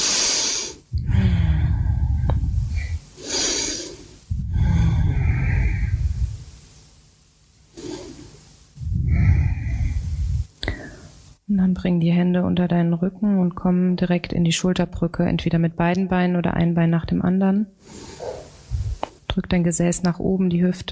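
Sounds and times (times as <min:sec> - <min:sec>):
deep breaths during a yoga balance practice: 0:00.0 - 0:06.5, 0:07.7 - 0:11.3, 0:17.8 - 0:19.0
speech: 0:11.8 - 0:18.4, 0:19.4 - 0:20.9.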